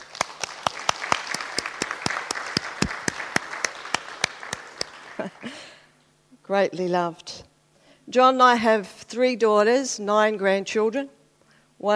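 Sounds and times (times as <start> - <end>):
audience clapping: 0.0 - 5.8
speech: 6.5 - 7.3, 8.1 - 11.2, 11.8 - 11.9.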